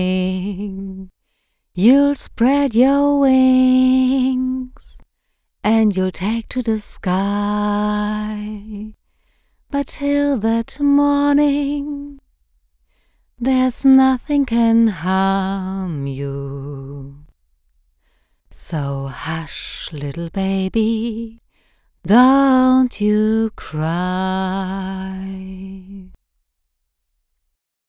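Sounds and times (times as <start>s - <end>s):
melancholic singing: 0.0s - 1.1s, 1.8s - 5.0s, 5.6s - 9.0s, 9.7s - 12.2s, 13.4s - 17.3s, 18.5s - 21.4s, 22.1s - 26.2s.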